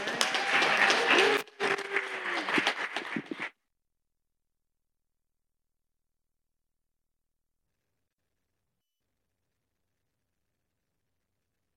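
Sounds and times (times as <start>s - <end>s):
audience clapping and applauding: 0.0s - 3.5s.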